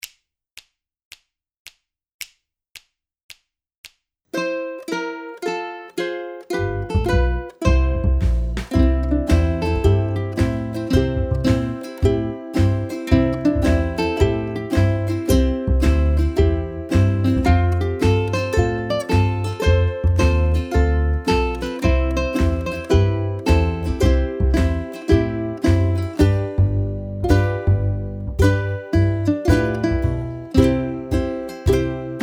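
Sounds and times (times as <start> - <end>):
backing track: 6.5 - 32.2.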